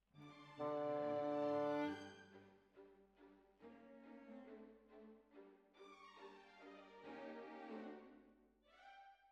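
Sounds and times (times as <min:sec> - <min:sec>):
bassoon: 0:00.6 - 0:02.0.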